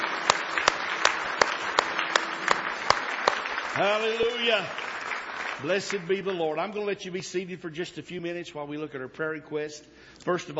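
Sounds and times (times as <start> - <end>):
crowd applauding in praise: 0.0 - 6.6
speech: 3.8 - 4.9, 5.6 - 10.5.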